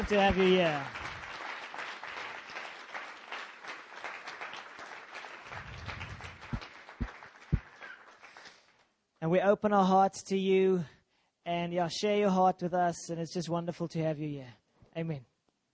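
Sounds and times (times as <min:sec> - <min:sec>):
speech: 0:00.0 - 0:01.0, 0:09.2 - 0:15.3
standing congregation applauding to welcome a guest reverend in South African style: 0:00.0 - 0:08.8
sharp low thumps: 0:05.5 - 0:07.7.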